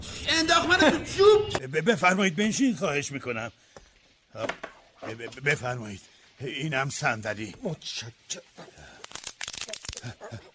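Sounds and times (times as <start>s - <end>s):
speech: 0.3s - 3.6s, 4.4s - 8.9s, 10.0s - 10.5s
spine bones cracking: 8.6s - 10.5s.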